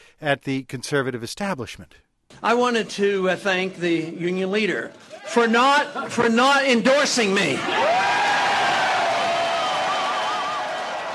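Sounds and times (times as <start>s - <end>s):
speech: 0.2s - 8.2s
enthusiastic crowd cheering at campaign headquarters: 2.6s - 11.1s.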